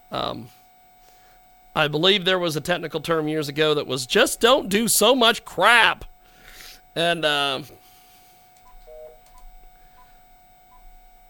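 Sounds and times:
low hiss: 0:00.0 - 0:11.2
speech: 0:00.1 - 0:00.6, 0:01.8 - 0:06.1, 0:06.9 - 0:07.8
telephone keypad dialing tones: 0:08.6 - 0:11.0.

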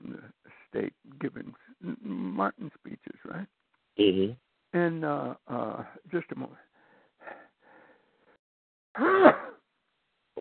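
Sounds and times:
speech: 0:00.8 - 0:01.6, 0:02.4 - 0:03.5, 0:04.2 - 0:06.2
breathy inhales: 0:06.7 - 0:08.4
person sneezing: 0:09.0 - 0:09.6.

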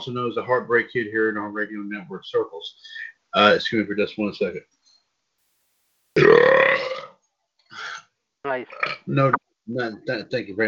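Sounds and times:
speech: 0:00.0 - 0:04.8, 0:08.4 - 0:10.6
loud burp after drinking soda: 0:06.2 - 0:07.2.

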